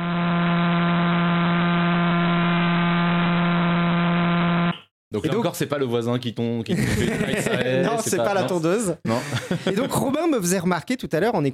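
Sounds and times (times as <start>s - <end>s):
millisecond pulsar signal rendered as a low buzzing drone: 0.0s - 4.8s
speech: 5.1s - 11.5s
laughter: 6.7s - 10.3s.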